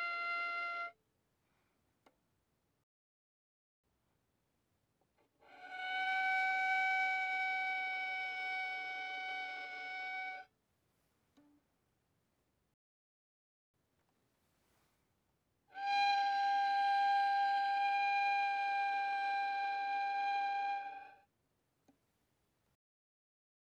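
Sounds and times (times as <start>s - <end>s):
violin arco mf sul G notes C5 and Gb5: 5.5s - 10.5s, 15.8s - 21.2s.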